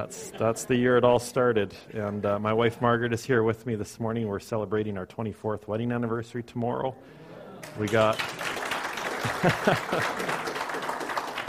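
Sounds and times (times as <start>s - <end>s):
laughter: 0.0s - 3.2s, 7.2s - 8.1s, 8.9s - 11.0s
speech: 0.0s - 8.5s, 9.2s - 10.5s
applause: 7.6s - 11.4s.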